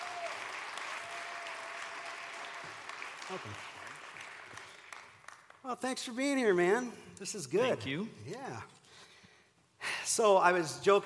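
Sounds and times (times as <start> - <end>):
audience applause: 0.0 - 5.6
speech: 3.3 - 3.8, 5.6 - 8.8, 10.1 - 11.0.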